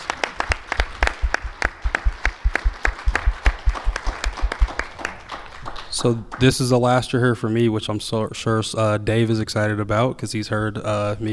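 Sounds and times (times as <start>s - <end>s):
audience applause: 0.0s - 6.6s
speech: 6.0s - 11.3s.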